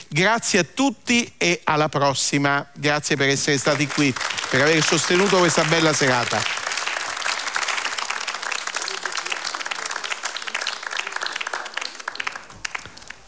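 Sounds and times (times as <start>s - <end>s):
speech: 0.1s - 6.6s
audience applause in a concert hall: 3.6s - 13.2s.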